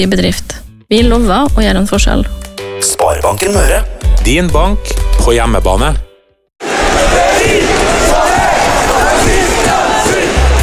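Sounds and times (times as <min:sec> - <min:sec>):
speech: 0:00.0 - 0:06.0
local community crowd cheering and roaring: 0:06.6 - 0:10.6.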